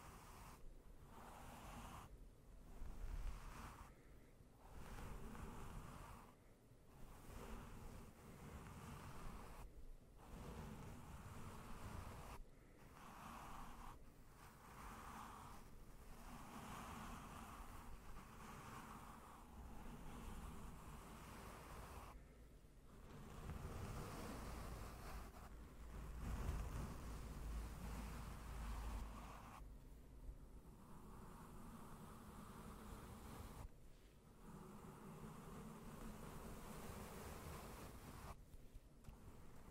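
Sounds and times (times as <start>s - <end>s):
slow gentle brushing across a microphone: 0.0s - 39.6s.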